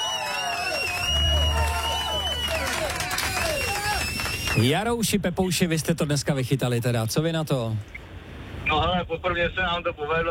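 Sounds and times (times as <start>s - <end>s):
hands clapping: 0.0s - 4.7s
speech: 4.6s - 8.0s, 8.7s - 10.2s.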